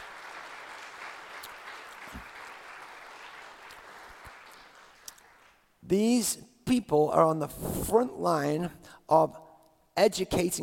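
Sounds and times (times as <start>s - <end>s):
audience clapping: 0.0s - 5.8s
speech: 5.9s - 9.4s, 10.0s - 10.6s.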